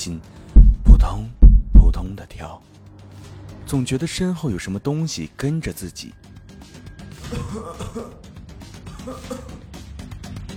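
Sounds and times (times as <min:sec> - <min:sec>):
speech: 0:00.0 - 0:00.4, 0:01.0 - 0:02.8, 0:03.7 - 0:06.3, 0:07.3 - 0:08.3, 0:09.0 - 0:09.7
faint coughing from hospital wards: 0:07.2 - 0:09.8.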